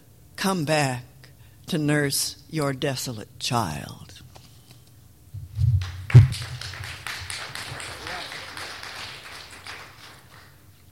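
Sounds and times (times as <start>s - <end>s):
speech: 0.4s - 1.1s, 1.7s - 4.2s
audience applause after a poem: 5.8s - 10.6s.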